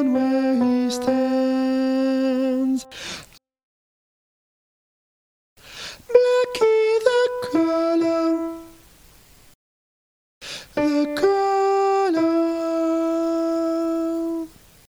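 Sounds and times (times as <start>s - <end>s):
alto voice singing a folk song: 0.0s - 3.1s, 6.1s - 8.8s, 10.8s - 14.6s.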